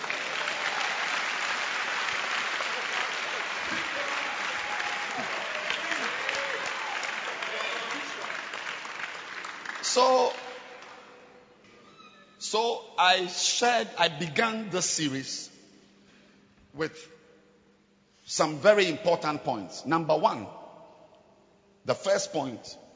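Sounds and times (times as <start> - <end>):
crowd clapping: 0.0 - 11.2
voices and cheers: 2.6 - 8.7
speech: 10.0 - 10.4, 12.5 - 15.5, 16.8 - 17.1, 18.3 - 20.6, 21.8 - 22.8.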